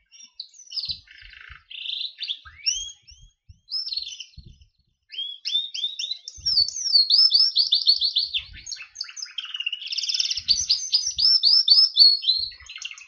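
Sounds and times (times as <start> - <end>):
Berner canary song: 0.0 - 13.0.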